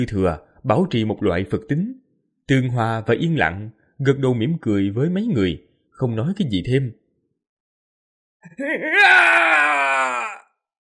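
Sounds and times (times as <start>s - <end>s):
speech: 0.0s - 7.0s, 8.4s - 10.2s
distant anguished screaming and wailing: 8.5s - 10.6s.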